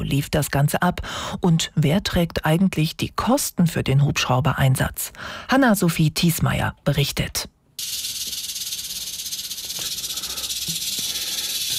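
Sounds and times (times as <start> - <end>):
speech: 0.1 - 8.0
snake hissing: 7.8 - 11.7.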